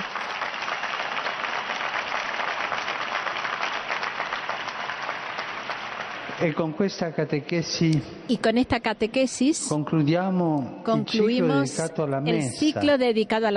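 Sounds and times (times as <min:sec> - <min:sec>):
audience applause: 0:00.0 - 0:06.6
speech: 0:06.4 - 0:13.5.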